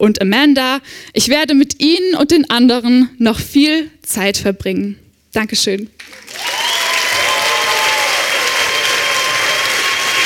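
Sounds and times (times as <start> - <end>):
speech: 0.0 - 6.6
audience applause: 6.0 - 10.2
high whistles and cheers from audience: 6.2 - 10.2.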